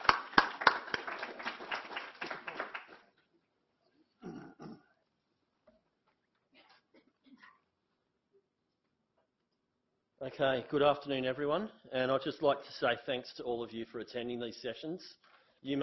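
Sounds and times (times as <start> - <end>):
audience applause: 0.0 - 3.0
speech: 10.2 - 15.8.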